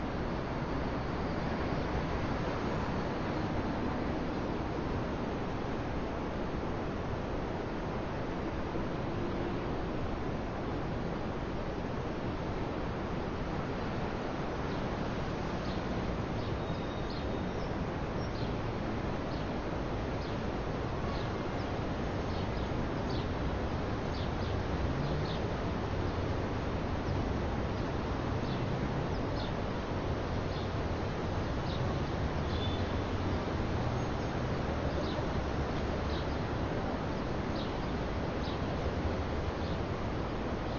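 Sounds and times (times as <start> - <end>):
city ambience: 0.0 - 40.7.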